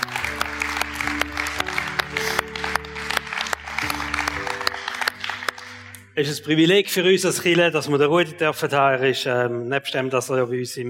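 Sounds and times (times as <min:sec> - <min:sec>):
audience applause: 0:00.0 - 0:06.0
speech: 0:06.2 - 0:10.8.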